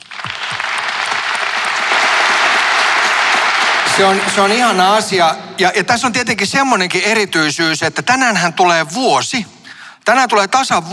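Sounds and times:
audience applause: 0.0s - 5.1s
speech: 4.0s - 10.9s.

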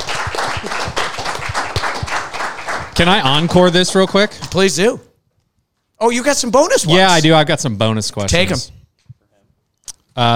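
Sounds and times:
audience round of applause for the crew: 0.0s - 4.4s
speech: 3.0s - 5.1s, 6.0s - 8.8s, 10.2s - 10.3s.

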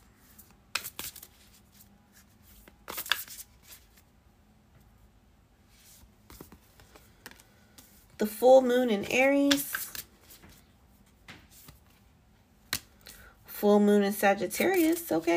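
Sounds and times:
oracle cards being shuffled and pulled for a reading: 0.2s - 4.0s, 5.8s - 8.2s, 9.0s - 12.0s, 14.6s - 15.3s
speech: 8.2s - 9.7s, 13.7s - 15.3s.

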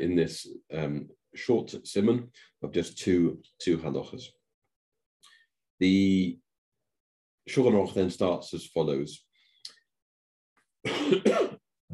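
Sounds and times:
speech: 0.0s - 4.4s, 5.8s - 6.4s, 7.5s - 9.2s, 10.8s - 11.5s
person recovering from a cold coughing: 10.8s - 11.6s.

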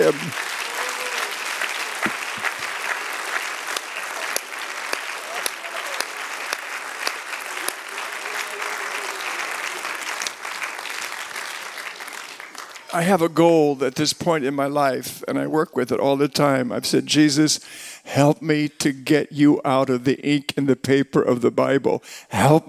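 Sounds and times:
audience applause: 0.0s - 13.4s
speech: 0.1s - 0.5s, 13.0s - 22.6s.

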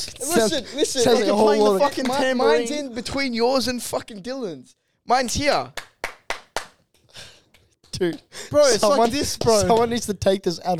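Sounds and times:
speech: 0.0s - 5.8s, 8.0s - 10.7s
hands clapping: 1.8s - 2.4s, 5.6s - 6.8s, 7.4s - 8.3s.

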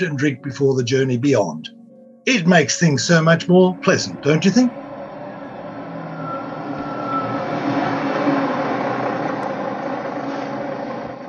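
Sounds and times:
speech: 0.0s - 4.8s
bus arriving: 2.6s - 11.2s.

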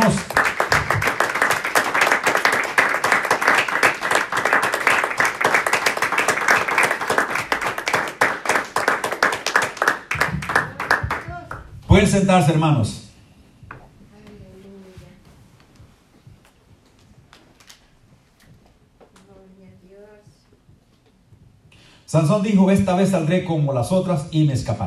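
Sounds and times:
audience applause: 0.0s - 11.6s
speech: 12.0s - 13.0s, 22.1s - 24.8s.

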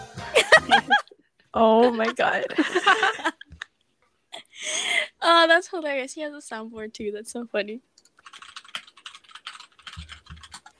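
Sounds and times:
laughter: 0.3s - 3.7s
speech: 1.6s - 3.4s, 5.2s - 7.9s
typing on a computer keyboard: 8.0s - 10.7s.

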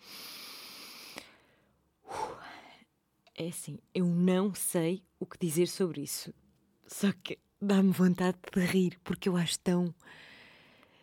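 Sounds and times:
deep breath in and out: 0.0s - 2.9s, 10.0s - 11.0s
speech: 3.4s - 10.3s.

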